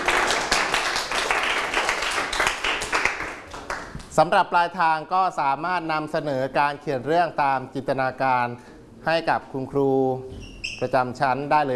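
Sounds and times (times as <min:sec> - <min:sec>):
hands clapping: 0:00.0 - 0:04.2
speech: 0:04.2 - 0:11.7.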